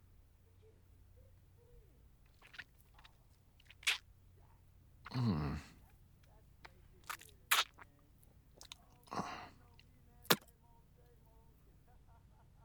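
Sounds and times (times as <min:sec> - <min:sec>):
person chewing and crunching food: 0:02.3 - 0:04.0, 0:07.0 - 0:07.8, 0:08.6 - 0:09.4, 0:10.2 - 0:10.4
wet mouth clicks and smacks: 0:02.3 - 0:04.0, 0:05.1 - 0:05.6, 0:07.0 - 0:07.8, 0:08.6 - 0:09.4.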